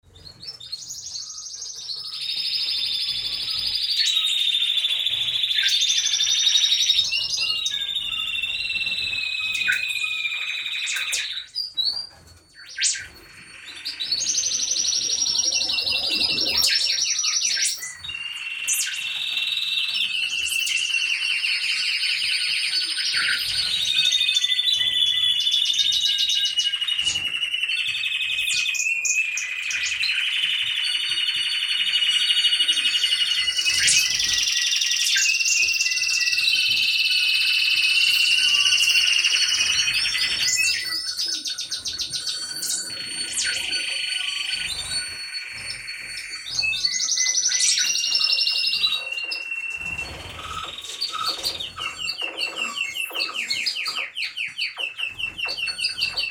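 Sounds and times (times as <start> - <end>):
birds in an aviary: 0.0 - 56.2.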